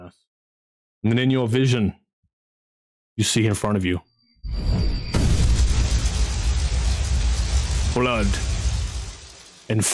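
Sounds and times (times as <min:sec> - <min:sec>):
speech: 0:01.0 - 0:02.0, 0:03.2 - 0:04.8, 0:08.0 - 0:08.5, 0:09.7 - 0:09.9
deep thunder from a god in a fantasy tabletop role-playing game: 0:05.0 - 0:09.7.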